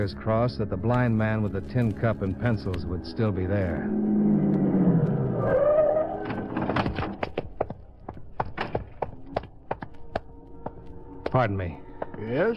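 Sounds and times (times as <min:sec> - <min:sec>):
speech: 0:00.0 - 0:05.6, 0:11.4 - 0:12.5
car driving: 0:00.9 - 0:09.0.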